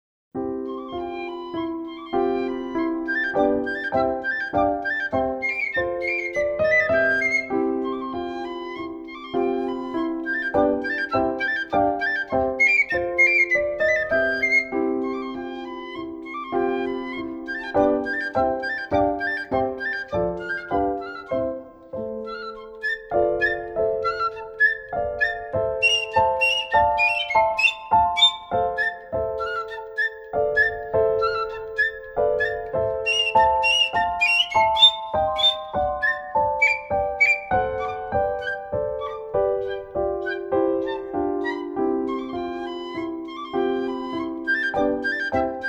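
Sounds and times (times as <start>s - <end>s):
piccolo: 0.4s - 45.6s.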